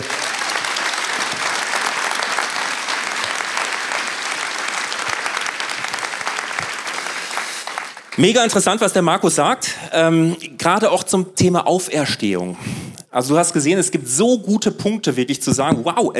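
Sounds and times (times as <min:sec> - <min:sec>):
audience applause: 0:00.0 - 0:08.6
speech: 0:08.2 - 0:16.1.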